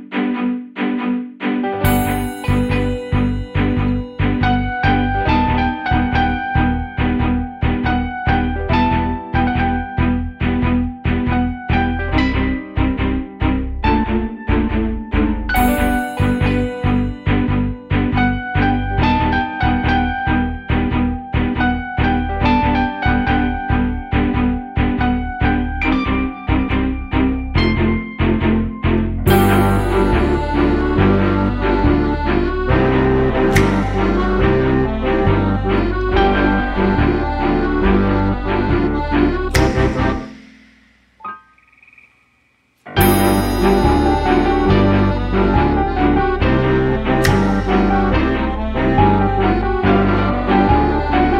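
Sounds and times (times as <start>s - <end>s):
piano melody: 0.4s - 41.6s, 42.9s - 51.3s.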